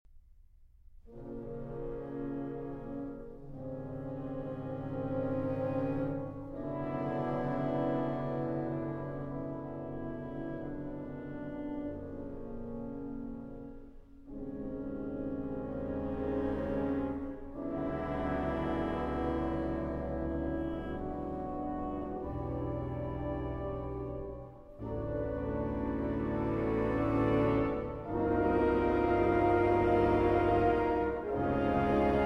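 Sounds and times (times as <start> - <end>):
piano and orchestra concerto live at Symphony Hall: 1.1 - 32.2.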